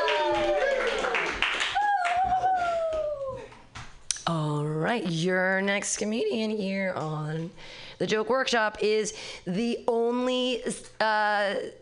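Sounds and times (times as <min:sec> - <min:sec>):
people cheering and whooping: 0:00.0 - 0:03.6
audience clapping: 0:00.0 - 0:03.7
speech: 0:04.9 - 0:11.8.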